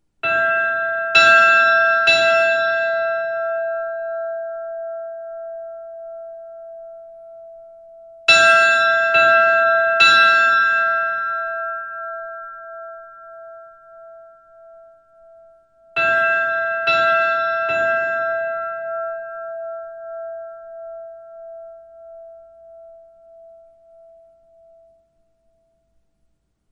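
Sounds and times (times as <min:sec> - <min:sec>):
church bells ringing at Miðgarðakirkja: 0:00.3 - 0:05.6, 0:08.3 - 0:13.2, 0:16.0 - 0:24.1.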